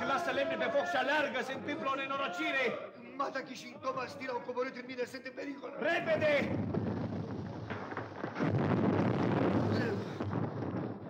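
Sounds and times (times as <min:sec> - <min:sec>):
speech: 0:00.4 - 0:06.8
ground cracking apart with a rumbling blast: 0:06.4 - 0:11.0.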